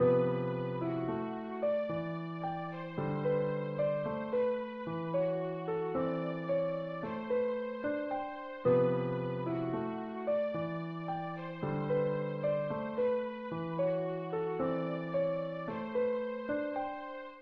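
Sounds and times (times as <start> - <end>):
music: 0.0 - 17.4.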